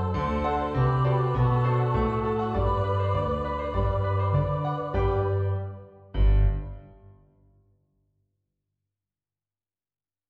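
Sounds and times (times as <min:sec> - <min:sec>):
piano: 0:00.0 - 0:07.3.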